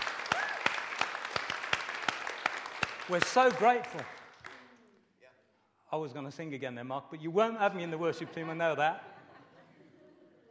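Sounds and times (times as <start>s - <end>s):
audience clapping: 0.0s - 5.0s
speech: 3.1s - 4.2s, 5.9s - 9.1s
laughter: 8.0s - 10.4s.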